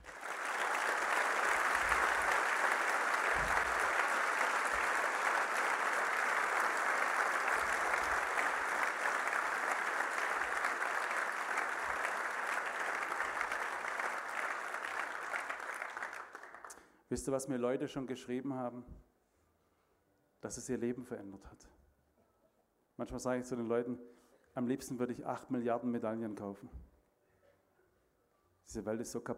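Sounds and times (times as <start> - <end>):
audience applause: 0.0 - 16.8
speech: 17.1 - 19.1, 20.5 - 21.8, 23.0 - 26.8, 28.7 - 29.3.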